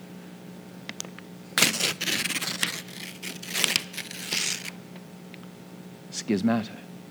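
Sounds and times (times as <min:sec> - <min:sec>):
sheet of paper being torn: 0:00.9 - 0:04.8
speech: 0:06.3 - 0:06.8.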